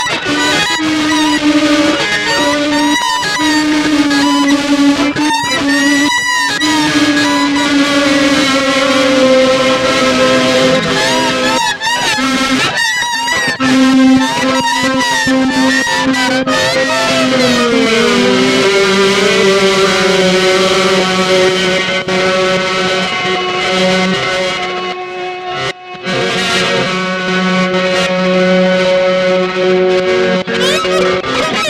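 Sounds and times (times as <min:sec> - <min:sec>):
electric guitar solo: 0:00.0 - 0:31.6.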